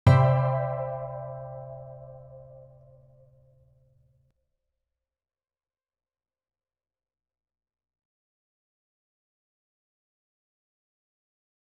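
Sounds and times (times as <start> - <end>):
ambient music: 0.1 - 3.1.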